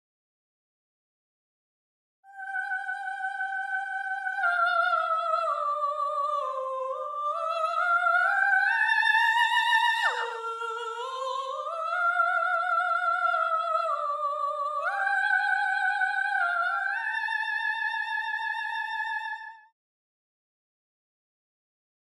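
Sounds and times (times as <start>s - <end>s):
soprano singing: 2.3s - 19.6s.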